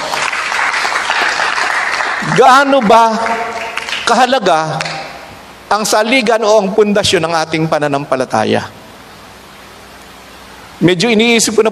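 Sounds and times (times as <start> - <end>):
congregation applauding during a Filipino church worship service: 0.0 - 5.1
speech: 2.4 - 4.9, 5.7 - 8.8, 10.8 - 11.6.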